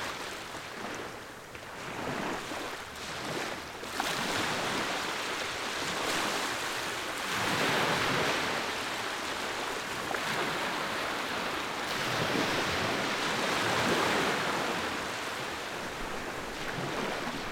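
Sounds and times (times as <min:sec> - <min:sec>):
beach waves in Fiji: 0:00.0 - 0:17.5.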